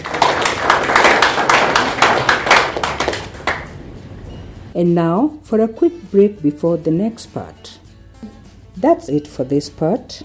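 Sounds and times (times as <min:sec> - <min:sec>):
audience clapping: 0:00.0 - 0:03.8
speech: 0:04.8 - 0:10.2.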